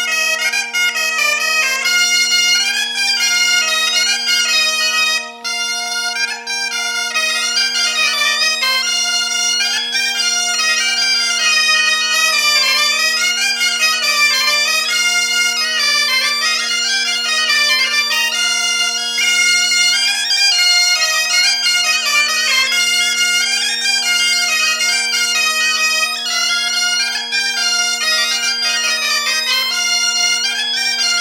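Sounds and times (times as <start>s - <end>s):
biniou playing at a festival: 0.0s - 31.1s.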